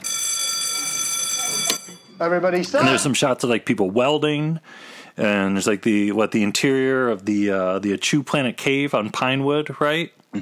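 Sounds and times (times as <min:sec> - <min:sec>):
film set shooting bell ringing: 0:00.0 - 0:03.0
speech: 0:02.2 - 0:10.4.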